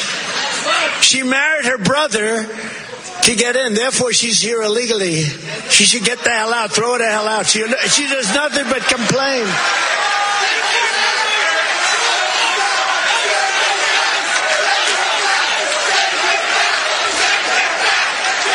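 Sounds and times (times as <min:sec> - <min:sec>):
speech: 0:01.0 - 0:10.1
shouting voices: 0:07.6 - 0:18.5
crowd chanting: 0:07.9 - 0:18.5.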